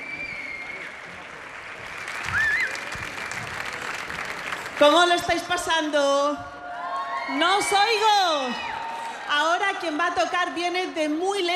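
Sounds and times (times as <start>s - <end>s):
whistle: 0.0s - 0.9s
concert audience applause: 0.0s - 5.3s
faint crowd voices: 0.0s - 11.5s
speech: 4.8s - 6.5s, 7.3s - 8.7s, 9.3s - 11.5s.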